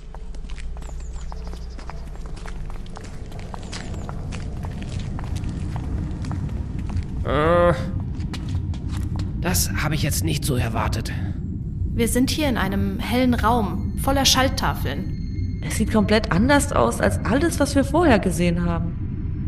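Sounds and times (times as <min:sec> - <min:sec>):
footsteps walking through a palace past dead guards: 0:00.0 - 0:09.4
low rumbling background: 0:00.0 - 0:19.4
speech: 0:09.5 - 0:11.4, 0:12.0 - 0:18.9.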